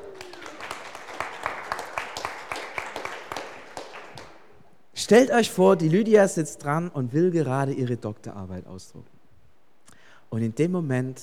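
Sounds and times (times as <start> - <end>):
crowd clapping: 0.0 - 4.6
speech: 5.0 - 9.2, 10.3 - 11.2.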